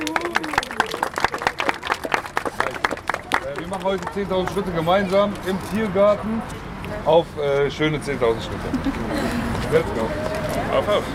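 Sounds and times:
crowd applauding: 0.0s - 5.0s
speech: 3.7s - 11.1s.

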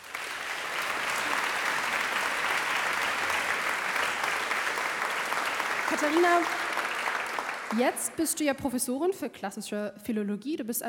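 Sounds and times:
audience applause: 0.0s - 8.2s
speech: 5.9s - 6.6s, 7.7s - 10.8s.

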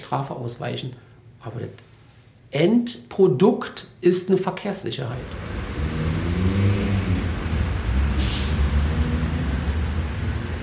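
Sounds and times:
speech: 0.1s - 1.9s, 2.5s - 5.7s
busy city street traffic near train station: 5.2s - 10.6s.

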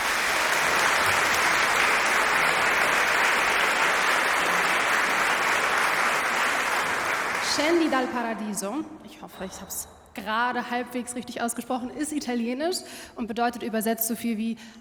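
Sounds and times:
audience applauding a choir: 0.0s - 8.4s
speech: 7.6s - 14.7s.

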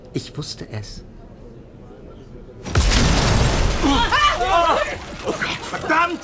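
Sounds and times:
speech: 0.2s - 1.1s, 5.2s - 6.2s
windows exploding: 2.6s - 5.9s
debris crackling: 2.6s - 6.2s
people crying out: 3.7s - 6.2s.

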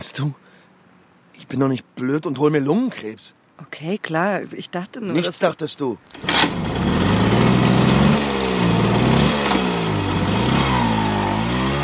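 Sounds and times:
speech: 0.0s - 0.4s, 1.4s - 7.3s
moped engine buzzing while circling a market square: 6.1s - 11.8s.

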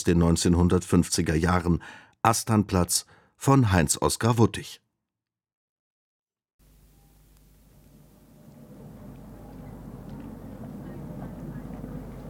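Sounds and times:
speech: 0.0s - 4.8s
city street noise: 7.7s - 12.2s
trams and buses passing at a city stop: 8.6s - 12.2s.

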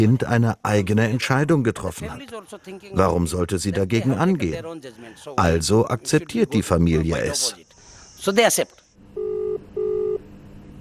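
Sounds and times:
speech: 0.0s - 8.8s
quiet telephone line hiss: 7.3s - 9.0s
telephone dialing tones: 9.2s - 10.2s.

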